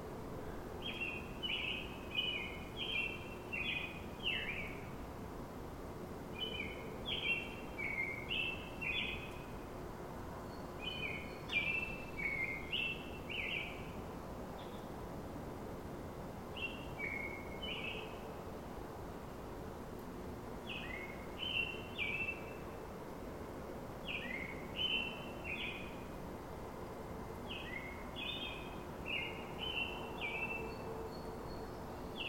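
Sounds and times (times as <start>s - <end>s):
soft background hiss: 0.0s - 32.2s
American Robin singing: 0.8s - 4.9s, 6.4s - 9.6s, 10.4s - 14.0s, 16.6s - 18.3s, 20.6s - 22.8s, 24.0s - 26.1s, 27.4s - 32.2s.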